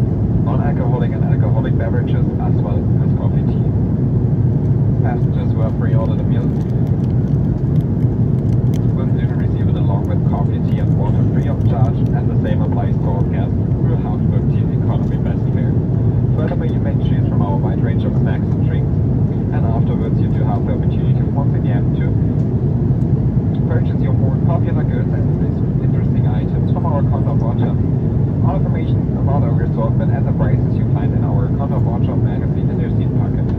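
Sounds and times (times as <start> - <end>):
Airbus A330 engine roar in cabin in flight: 0.0 - 33.5.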